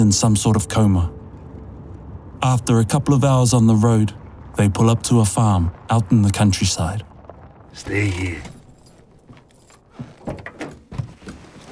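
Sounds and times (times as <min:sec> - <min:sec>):
speech: 0:00.0 - 0:01.2, 0:02.4 - 0:07.1, 0:07.8 - 0:08.5
car door opening: 0:07.7 - 0:11.7.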